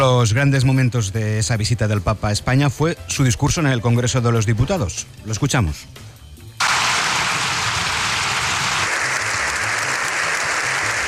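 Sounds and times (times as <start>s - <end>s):
speech: 0.0s - 6.1s
prolonged applause ovation: 6.6s - 11.0s.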